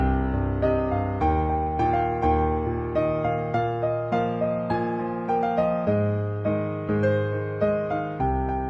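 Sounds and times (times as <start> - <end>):
jazz piano: 0.0 - 8.6.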